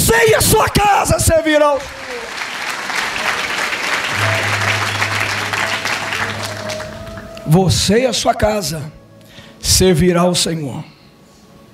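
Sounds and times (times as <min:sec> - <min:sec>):
speech: 0:00.1 - 0:02.5, 0:07.5 - 0:09.0, 0:09.6 - 0:10.9
audience applauding: 0:00.8 - 0:07.6.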